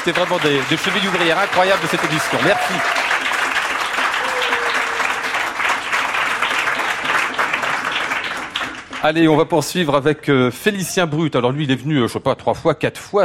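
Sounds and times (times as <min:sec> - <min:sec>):
speech: 0:00.0 - 0:03.0, 0:09.0 - 0:13.2
audience applause: 0:00.0 - 0:09.5.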